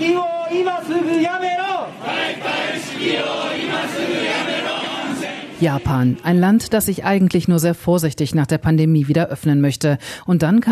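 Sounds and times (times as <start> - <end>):
speech: 0.0 - 2.4, 5.6 - 10.7
amplified voice calling: 0.0 - 7.0
street protest crowd chanting and shouting: 0.0 - 7.0.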